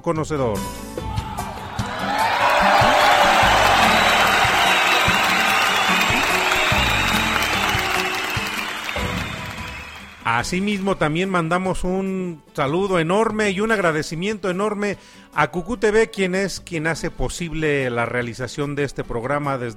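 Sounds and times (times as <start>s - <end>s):
speech: 0.0s - 0.9s, 10.3s - 19.7s
audience applause: 1.6s - 10.3s.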